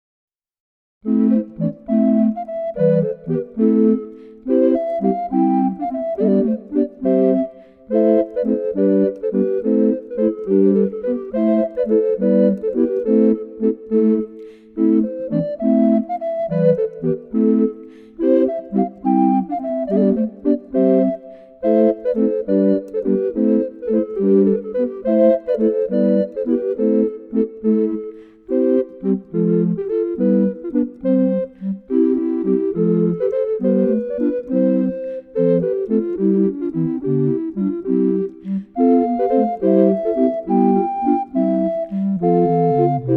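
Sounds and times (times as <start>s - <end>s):
baroque dance piece: 1.0s - 43.1s.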